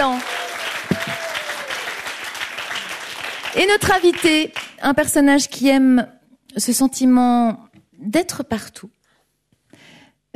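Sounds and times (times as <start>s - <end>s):
audience applause at a live improv comedy show: 0.0s - 4.8s
speech: 3.6s - 9.0s.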